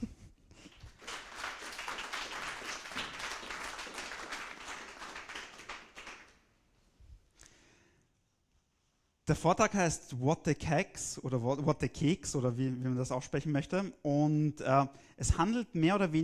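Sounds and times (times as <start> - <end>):
audience applause: 0.7 - 6.4
speech: 9.3 - 16.2.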